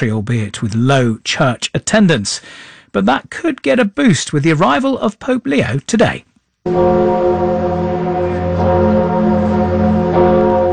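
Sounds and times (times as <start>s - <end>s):
speech: 0.0s - 9.0s
Notre Dame cathedral bells ringing in Paris: 6.7s - 10.7s.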